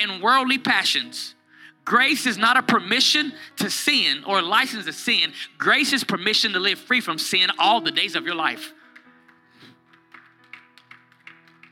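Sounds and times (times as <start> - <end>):
speech: 0.0 - 8.8
sparse audience applause in church: 8.9 - 11.7.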